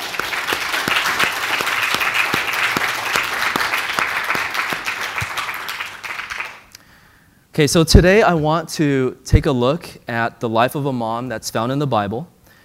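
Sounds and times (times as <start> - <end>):
audience round of applause: 0.0 - 6.7
speech: 7.6 - 12.3.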